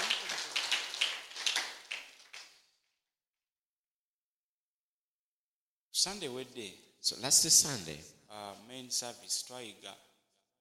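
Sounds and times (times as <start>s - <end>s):
audience clapping hands: 0.0s - 2.6s
speech: 6.0s - 10.1s.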